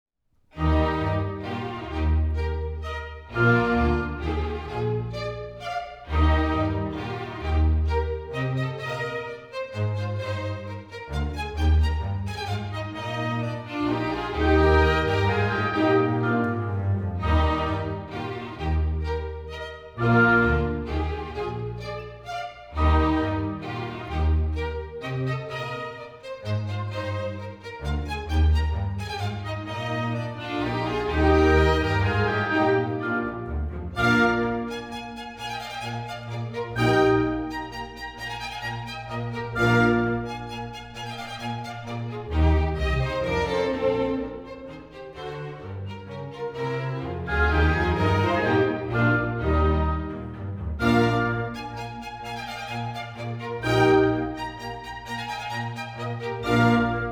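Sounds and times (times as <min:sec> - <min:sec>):
minuet in E flat: 0:00.6 - 0:57.1.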